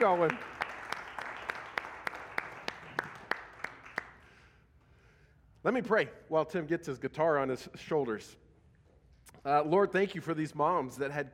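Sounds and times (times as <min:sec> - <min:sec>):
speech: 0:00.0 - 0:00.6, 0:05.6 - 0:08.4, 0:09.4 - 0:11.3
audience applause: 0:00.0 - 0:04.2.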